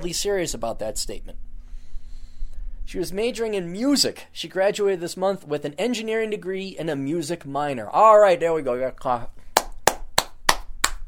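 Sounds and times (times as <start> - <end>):
speech: 0.0 - 1.5, 2.9 - 9.4
clapping: 9.6 - 11.0.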